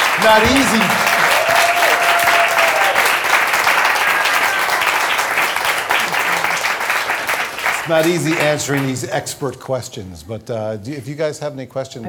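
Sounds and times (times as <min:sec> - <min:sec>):
audience round of applause: 0:00.0 - 0:09.3
speech: 0:00.2 - 0:01.0, 0:07.9 - 0:12.0.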